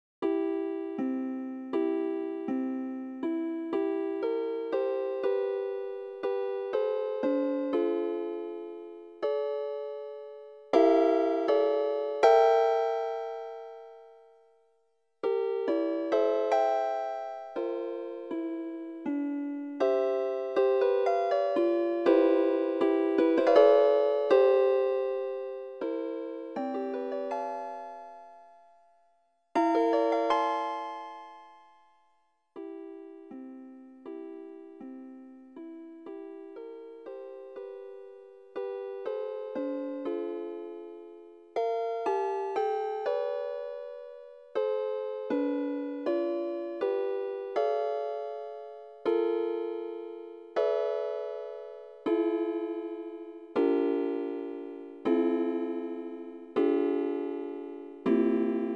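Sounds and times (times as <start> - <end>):
seven-limit octony lullaby: 0.2 - 58.7.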